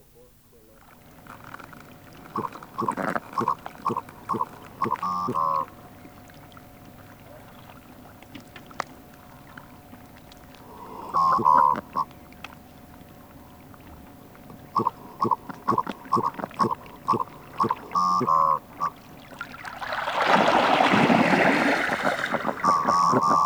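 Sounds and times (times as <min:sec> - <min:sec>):
common merganser calls: 0:00.0 - 0:23.4
low hum: 0:00.0 - 0:23.4.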